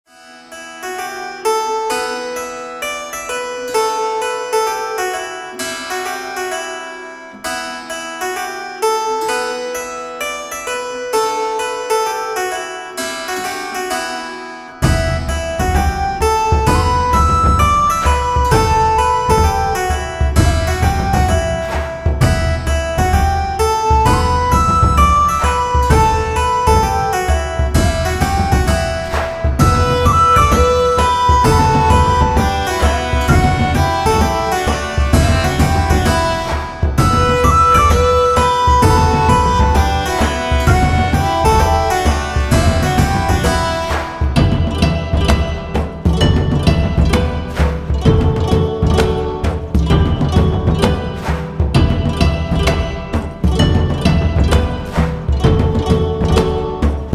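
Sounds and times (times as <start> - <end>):
magical medieval music: 0.0 - 57.1.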